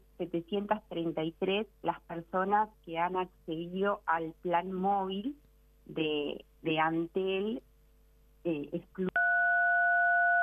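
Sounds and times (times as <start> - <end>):
speech: 0.2 - 7.7, 8.4 - 9.1
telephone keypad dual-pitched beep: 9.2 - 10.4.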